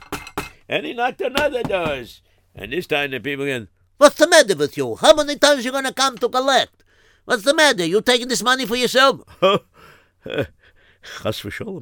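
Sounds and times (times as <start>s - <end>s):
speech: 0.7s - 11.8s
knocking on a door: 1.3s - 2.1s.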